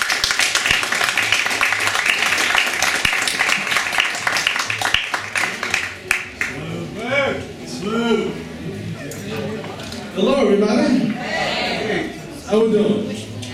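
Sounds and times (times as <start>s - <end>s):
audience applause: 0.0s - 6.6s
crowd voices and cheers: 6.0s - 12.5s
speech: 12.5s - 13.1s.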